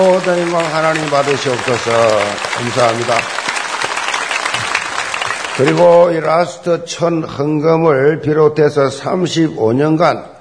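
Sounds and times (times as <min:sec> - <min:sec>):
speech: 0:00.0 - 0:03.4, 0:05.6 - 0:10.3
audience applauding in church: 0:00.0 - 0:06.3.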